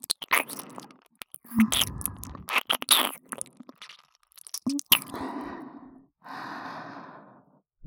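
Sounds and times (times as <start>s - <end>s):
ASMR ear kiss sounds: 0.0s - 5.2s.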